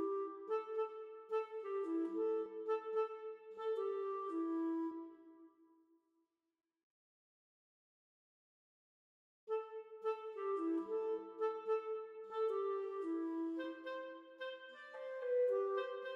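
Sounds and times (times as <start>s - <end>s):
B-flat clarinet playing: 0.0s - 5.2s, 9.5s - 16.1s.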